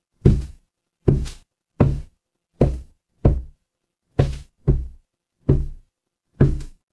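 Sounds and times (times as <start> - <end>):
footsteps on wood: 0.2 - 3.5, 4.2 - 5.8, 6.4 - 6.8.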